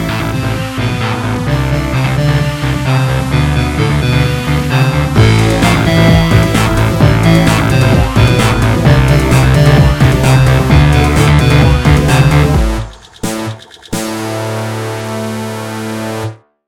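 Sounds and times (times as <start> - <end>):
electro boss battle music with bass drums melody: 0.0 - 16.4.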